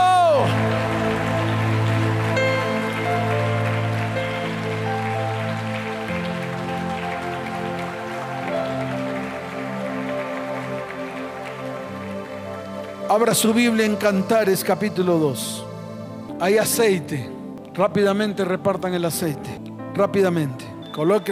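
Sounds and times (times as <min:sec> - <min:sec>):
audience applause: 0:00.0 - 0:15.3, 0:20.9 - 0:21.3
sustained keyboard chords: 0:00.0 - 0:21.3
speech: 0:13.2 - 0:15.7, 0:16.4 - 0:21.3.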